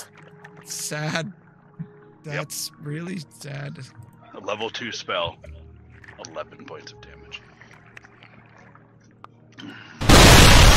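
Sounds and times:
speech: 0.7s - 1.4s, 2.2s - 5.5s, 6.2s - 7.1s
shattering sound effect: 10.0s - 10.7s.

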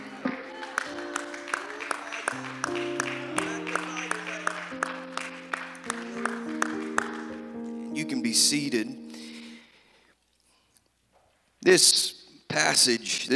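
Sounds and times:
audience clapping hands: 0.0s - 7.6s
speech: 8.4s - 9.0s, 11.7s - 12.1s, 12.8s - 13.3s.

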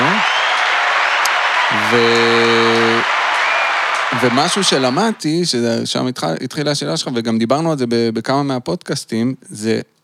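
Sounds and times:
applause: 0.0s - 5.3s
speech: 1.9s - 2.8s, 4.1s - 10.0s.

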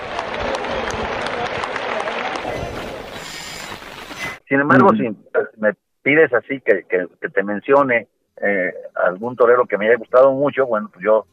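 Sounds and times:
bullring crowd applauding a Spanish bullfighter: 0.0s - 4.2s
speech: 4.5s - 11.3s.

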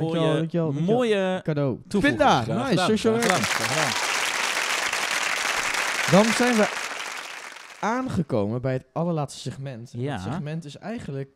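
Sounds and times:
speech: 0.0s - 4.1s, 6.1s - 6.8s, 7.8s - 11.3s
applause: 3.1s - 8.0s.

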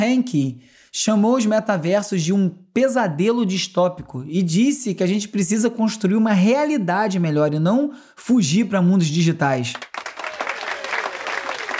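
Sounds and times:
speech: 0.0s - 10.0s
applause: 9.6s - 11.7s.

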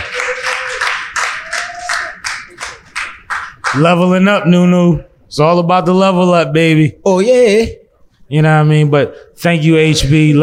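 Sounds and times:
audience clapping: 0.0s - 4.0s
speech: 3.7s - 10.4s.

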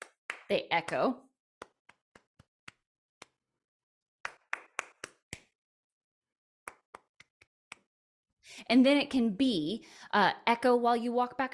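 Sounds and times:
sharp hand claps tapping out a rhythm: 0.0s - 3.4s, 4.2s - 5.5s, 6.7s - 7.9s
speech: 0.5s - 1.3s, 8.6s - 11.5s.

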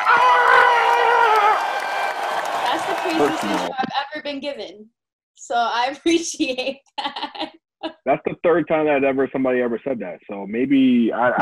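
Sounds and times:
applause: 0.0s - 3.8s
cheering: 0.0s - 3.8s
speech: 3.1s - 11.3s.

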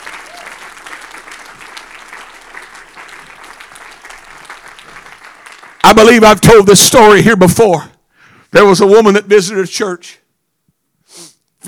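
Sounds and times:
audience clapping hands: 0.0s - 6.6s
speech: 5.9s - 7.9s, 8.5s - 10.2s.

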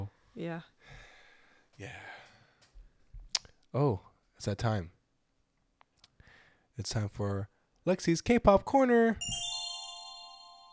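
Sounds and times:
speech: 0.4s - 1.0s, 1.8s - 2.2s, 3.7s - 5.0s, 6.8s - 9.4s
bell-like segment chime: 9.2s - 10.7s.

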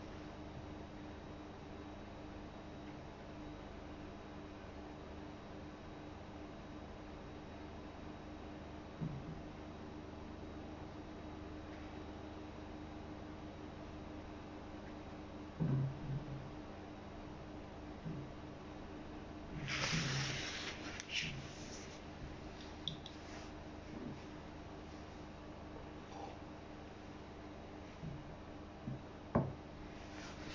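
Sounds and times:
steady low hum: 0.0s - 30.5s
rustling: 19.6s - 22.0s.

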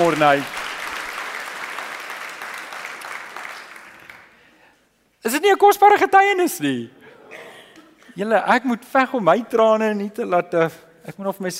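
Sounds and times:
speech: 0.0s - 0.6s, 5.2s - 7.0s, 8.2s - 11.5s
applause, hand clapping: 0.0s - 4.4s.

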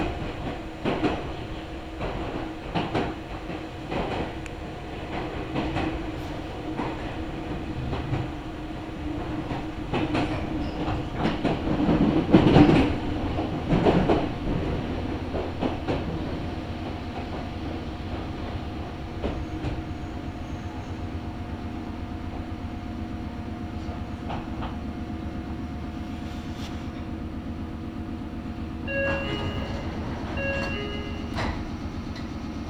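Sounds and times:
Meitetsu Kakamigahara Line local train rumbling and clacking: 0.0s - 32.6s
tonal beeps: 28.9s - 31.6s.

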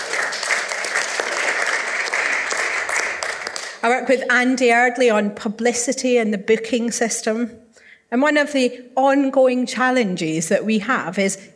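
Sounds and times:
audience applause: 0.0s - 3.8s
speech: 3.8s - 11.5s.

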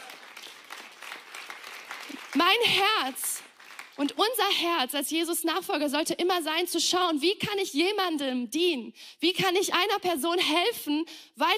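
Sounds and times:
audience applause: 0.0s - 4.0s
speech: 2.3s - 3.3s, 4.0s - 11.5s.

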